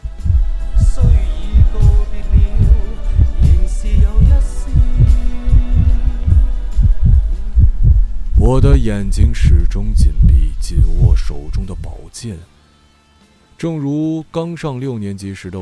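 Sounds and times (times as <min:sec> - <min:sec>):
pounding heartbeat sound effect: 0:00.0 - 0:12.0
speech: 0:08.5 - 0:12.6, 0:13.6 - 0:15.6.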